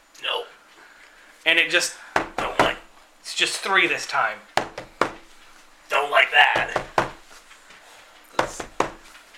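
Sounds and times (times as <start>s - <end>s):
speech: 1.5s - 2.0s, 3.4s - 4.5s
knocking on wood: 2.2s - 2.9s, 4.6s - 5.4s, 6.5s - 7.3s, 8.4s - 9.1s.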